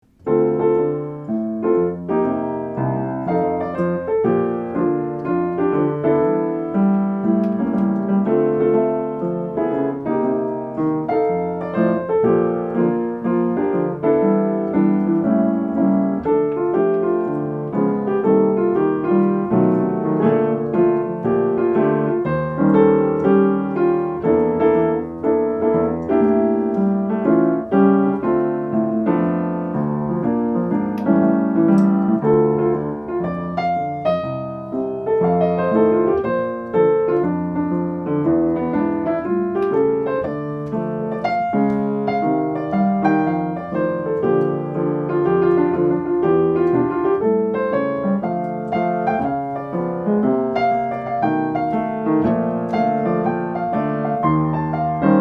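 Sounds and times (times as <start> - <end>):
bar piano: 0.0 - 55.1.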